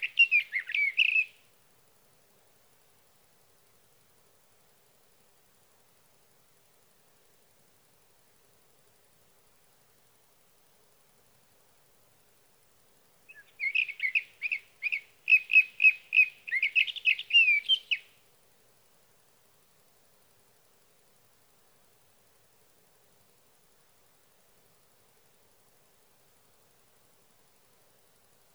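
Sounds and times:
Sage thrasher singing at night: 0:00.0 - 0:01.3, 0:13.3 - 0:18.1.

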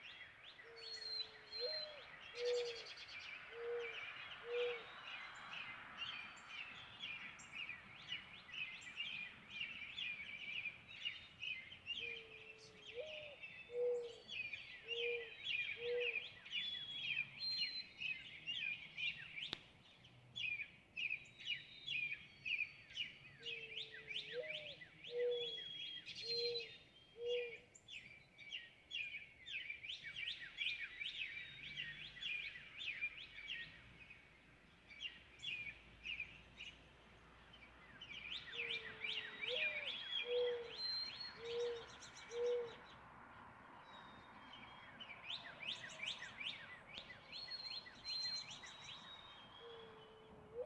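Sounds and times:
Northern cardinal whistling song: 0:00.0 - 0:19.6, 0:20.4 - 0:33.8, 0:37.6 - 0:42.8, 0:43.8 - 0:50.6
low hollow bird coos: 0:00.7 - 0:04.9, 0:12.0 - 0:16.3, 0:23.4 - 0:27.7, 0:38.5 - 0:42.9, 0:49.6 - 0:50.6.

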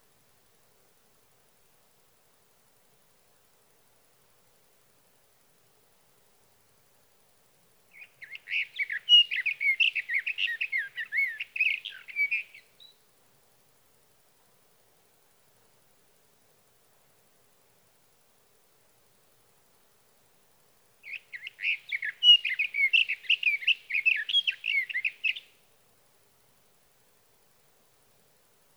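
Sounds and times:
sage thrasher song warble: 0:08.0 - 0:13.0, 0:21.1 - 0:25.6.

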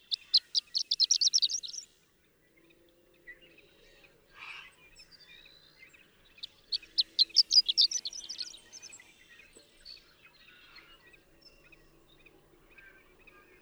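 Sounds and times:
horned lark singing among cattle on Marble Hot Springs Road, Sierra Valley, California: 0:00.1 - 0:01.8, 0:06.4 - 0:09.0.

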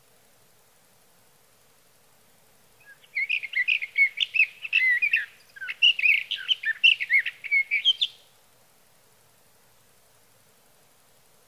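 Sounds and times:
sage thrasher song: 0:02.8 - 0:08.2.

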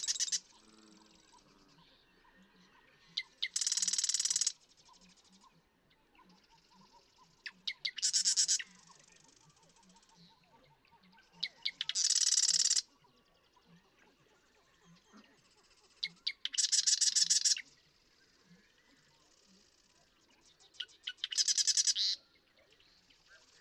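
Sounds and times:
Marsh Wren song with clicks and mechanical rattle: 0:00.0 - 0:01.5, 0:03.2 - 0:05.4, 0:06.4 - 0:10.3, 0:11.4 - 0:12.9, 0:14.9 - 0:18.3, 0:19.0 - 0:22.2.

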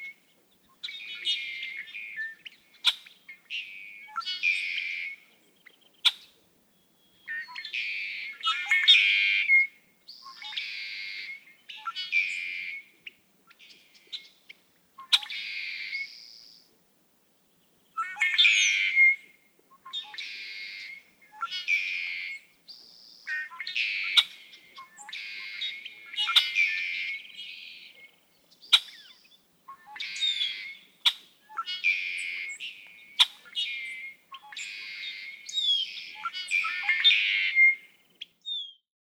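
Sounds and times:
Red-winged Blackbird calling: 0:00.0 - 0:16.8, 0:17.6 - 0:38.8.

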